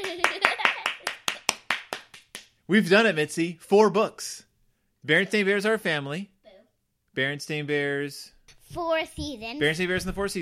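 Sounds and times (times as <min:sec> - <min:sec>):
hands clapping: 0:00.0 - 0:02.6
speech: 0:02.7 - 0:04.4, 0:05.0 - 0:06.3, 0:07.2 - 0:10.4.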